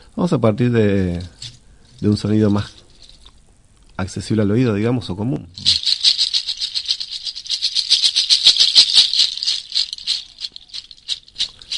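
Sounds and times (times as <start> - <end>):
speech: 0.2 - 1.4, 2.0 - 2.8, 4.0 - 5.7
chajchas goat-hoof rattle shaken: 1.1 - 3.4, 5.6 - 11.7.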